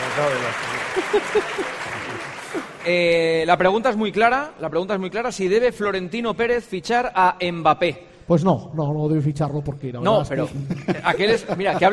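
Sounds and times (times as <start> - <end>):
audience applause: 0.0 - 3.2
speech: 0.2 - 11.9
laughter: 0.6 - 2.8, 10.1 - 11.9.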